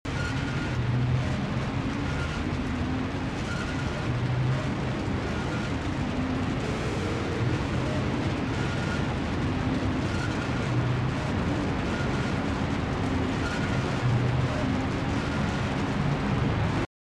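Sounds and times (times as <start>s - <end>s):
guitar: 0.1s - 16.9s.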